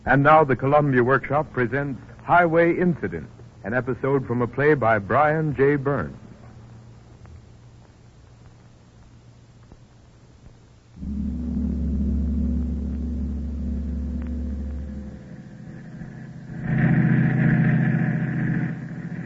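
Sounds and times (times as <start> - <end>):
speech: 0.0 - 6.2
car engine droning on a highway at night in a radio drama: 11.0 - 19.2.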